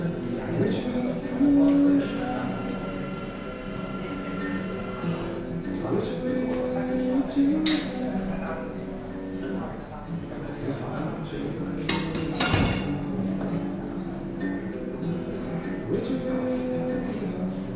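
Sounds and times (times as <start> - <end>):
murmur of overlapping voices in a café: 0.0 - 17.7
dishes and cutlery clinking in a café: 11.8 - 13.6.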